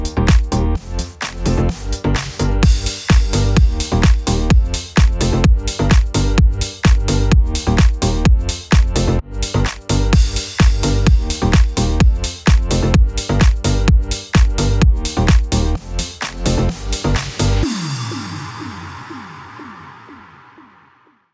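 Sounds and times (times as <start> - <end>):
pop dance music bed in G minor: 0.0 - 21.2.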